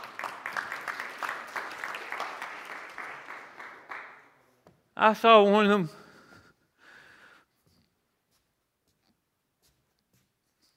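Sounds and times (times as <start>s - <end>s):
audience clapping for worship team: 0.0s - 4.5s
speech: 5.0s - 6.0s.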